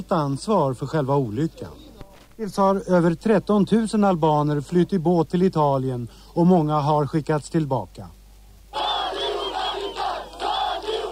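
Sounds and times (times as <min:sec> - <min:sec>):
speech: 0:00.0 - 0:01.8, 0:02.4 - 0:08.2
large crowd chanting at mass demonstration: 0:08.7 - 0:11.1.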